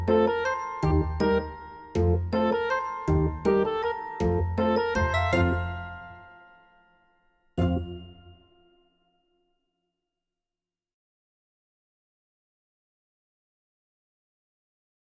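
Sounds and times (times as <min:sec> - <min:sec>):
comic clarinet melody: 0:00.0 - 0:06.5, 0:07.6 - 0:08.4.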